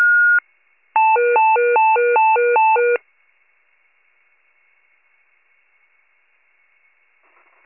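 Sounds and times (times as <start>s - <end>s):
fire pager alert: 0.1s - 3.0s.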